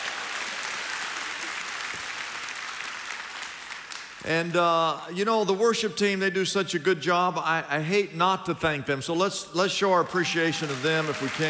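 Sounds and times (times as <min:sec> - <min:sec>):
audience applause: 0:00.0 - 0:04.2, 0:10.1 - 0:11.4
speech: 0:04.2 - 0:11.4.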